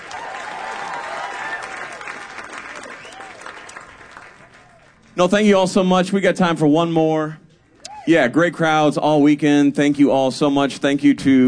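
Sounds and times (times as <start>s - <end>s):
audience applause: 0.0s - 5.1s
speech: 5.2s - 7.4s, 8.0s - 11.4s.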